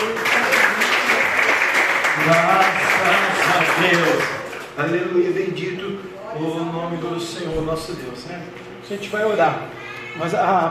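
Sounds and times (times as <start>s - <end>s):
applause: 0.0s - 5.0s
speech: 2.3s - 2.8s, 3.6s - 10.6s.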